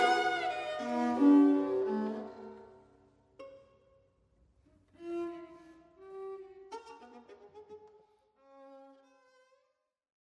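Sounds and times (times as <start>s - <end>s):
string quartet playing flowingly: 0.0s - 2.8s, 5.0s - 8.0s.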